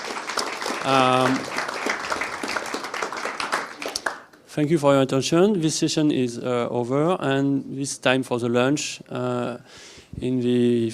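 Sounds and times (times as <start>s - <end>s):
audience applause: 0.0s - 4.4s
speech: 0.8s - 1.6s, 4.6s - 10.9s.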